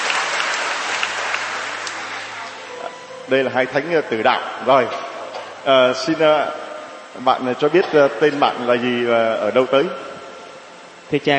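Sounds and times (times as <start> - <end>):
audience applause: 0.0 - 2.7
speech: 3.3 - 5.0, 5.6 - 10.1, 11.1 - 11.3.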